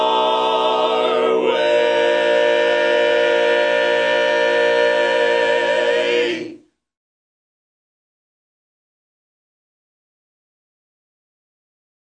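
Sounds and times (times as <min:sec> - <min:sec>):
tenor part of barbershop harmony singing: 0:00.0 - 0:06.6.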